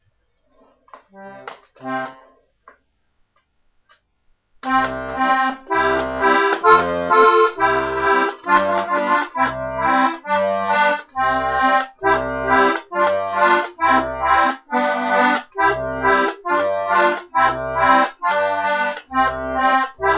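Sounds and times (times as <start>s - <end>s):
harmonica playing a nursery tune: 4.7s - 20.1s.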